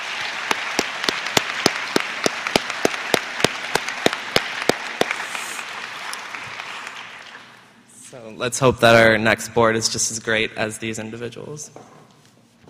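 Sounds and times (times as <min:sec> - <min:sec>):
audience applause: 0:00.0 - 0:07.8
speech: 0:08.1 - 0:12.0.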